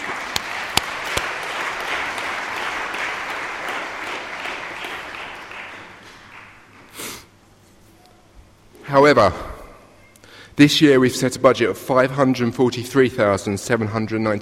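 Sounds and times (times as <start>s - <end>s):
church audience applause: 0.0s - 6.9s
speech: 8.9s - 9.5s, 10.6s - 14.3s.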